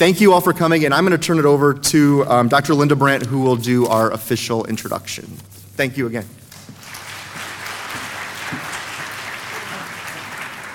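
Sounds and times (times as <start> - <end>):
speech: 0.0 - 6.4
audience applause: 6.7 - 10.7.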